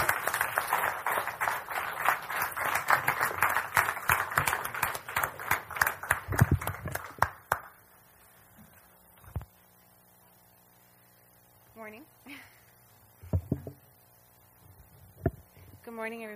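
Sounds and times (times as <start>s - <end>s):
audience applause: 0.0s - 7.8s.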